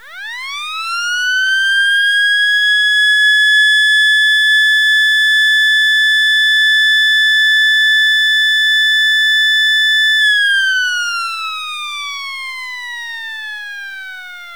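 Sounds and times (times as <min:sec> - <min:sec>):
siren: 0:00.0 - 0:11.2.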